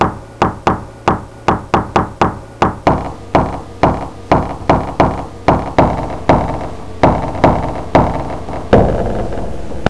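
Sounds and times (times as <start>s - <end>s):
long knock: 0.0s - 9.8s.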